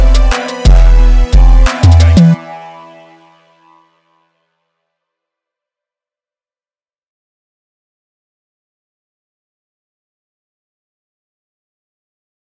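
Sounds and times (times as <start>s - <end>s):
jerk type beat: 0.0s - 2.4s.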